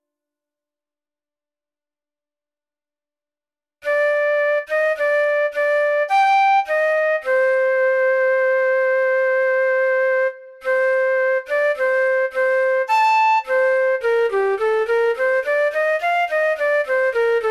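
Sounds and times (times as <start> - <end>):
flute playing a siciliano: 3.8 - 17.4.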